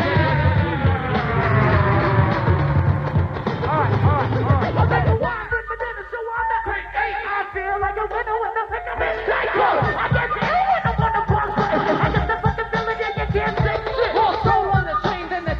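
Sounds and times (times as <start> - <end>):
flute loop in San Francisco CA: 0.0 - 15.5.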